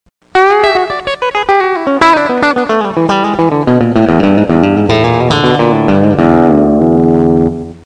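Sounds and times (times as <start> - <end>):
guitar: 0.2 - 7.8.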